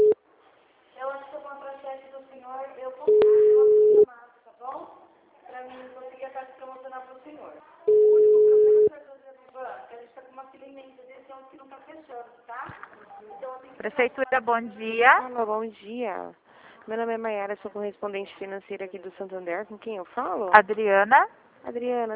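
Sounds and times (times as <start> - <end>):
telephone line tones during a call transfer: 3.1 - 4.0, 7.9 - 8.9
speech: 13.8 - 22.1.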